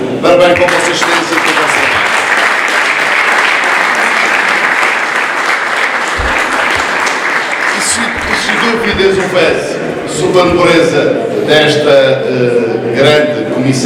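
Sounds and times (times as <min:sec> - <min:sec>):
speech: 0:00.2 - 0:01.4, 0:09.3 - 0:13.8
round of applause: 0:00.5 - 0:09.4.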